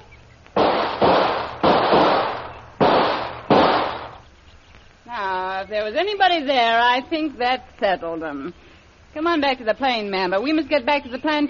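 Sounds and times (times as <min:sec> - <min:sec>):
gunshots: 0:00.6 - 0:04.2
speech: 0:05.7 - 0:11.4.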